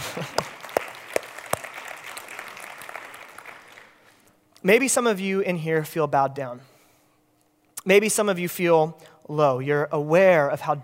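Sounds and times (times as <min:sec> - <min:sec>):
audience applause: 0:00.0 - 0:04.2
speech: 0:04.6 - 0:06.7, 0:07.8 - 0:10.8.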